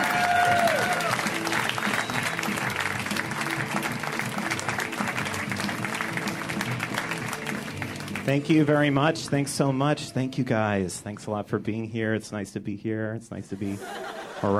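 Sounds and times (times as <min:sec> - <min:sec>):
stand-up comedy audience clapping for a comedian: 0:00.0 - 0:09.0
speech: 0:08.3 - 0:14.5
laughter: 0:13.6 - 0:14.5.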